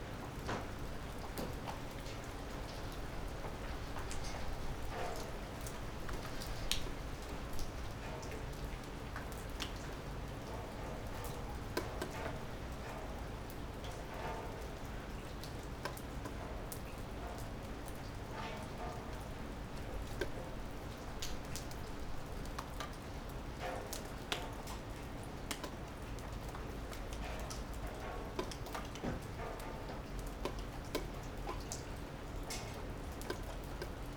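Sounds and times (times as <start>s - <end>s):
gentle urban rain: 0.0s - 34.1s.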